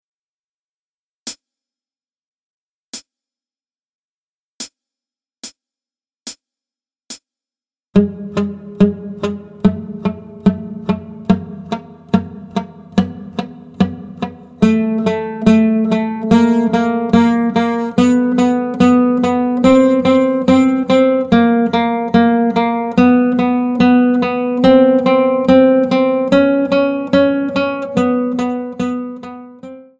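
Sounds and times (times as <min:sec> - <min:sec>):
left hand guitar exercise: 0:08.0 - 0:29.9.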